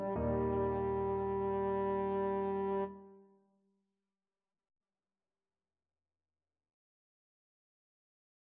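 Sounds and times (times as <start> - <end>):
classical piece in E for French horn: 0.0 - 3.0.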